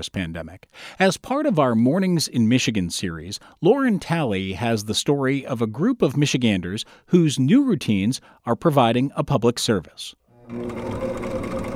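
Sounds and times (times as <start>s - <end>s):
speech: 0.0s - 11.6s
home sewing machine stitching cloth masks: 10.4s - 11.7s.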